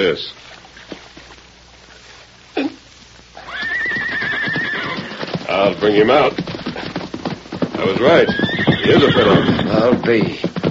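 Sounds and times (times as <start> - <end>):
speech: 0.1 - 1.0, 5.5 - 6.5, 7.8 - 10.5
horse neighing: 3.4 - 7.0, 7.6 - 10.0.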